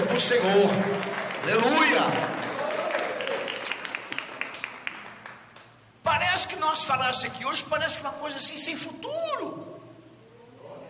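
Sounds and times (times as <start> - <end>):
crowd applauding: 0.0 - 5.8
speech: 0.2 - 2.5, 6.4 - 9.8.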